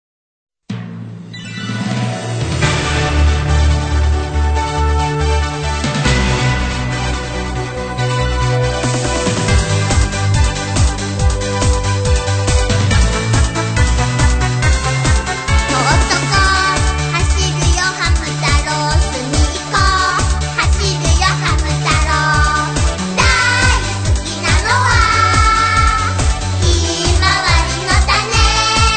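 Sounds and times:
Japanese opening theme music: 0.7 - 28.9.

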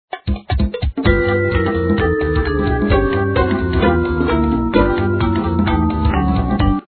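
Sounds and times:
music: 0.1 - 6.8.

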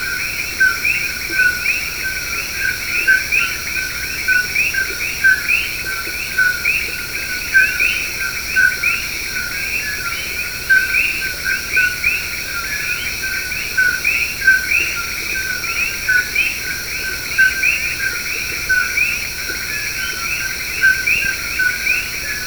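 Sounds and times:
coqui frogs calling: 0.0 - 22.4.

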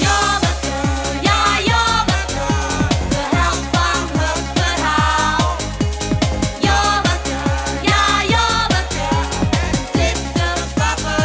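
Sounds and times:
tune: 0.0 - 11.2.

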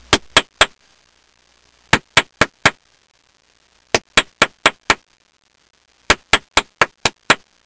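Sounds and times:
hand claps: 0.1 - 0.8, 1.9 - 2.8, 3.9 - 5.0, 6.1 - 7.5.

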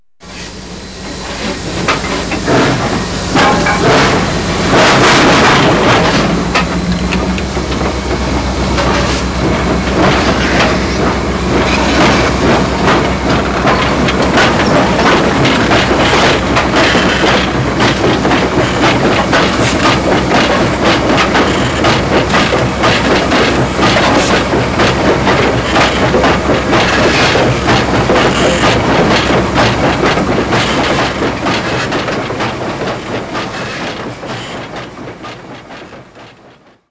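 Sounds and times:
train: 0.2 - 36.8.

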